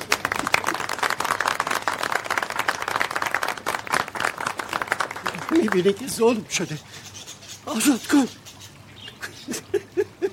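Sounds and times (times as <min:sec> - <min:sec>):
audience clapping: 0:00.0 - 0:06.4
speech: 0:05.5 - 0:08.4.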